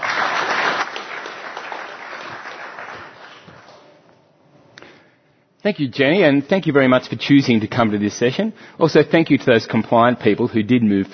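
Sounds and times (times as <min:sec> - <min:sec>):
audience applause welcoming a speaker to a conference session: 0:00.0 - 0:04.0
speech: 0:05.6 - 0:11.1.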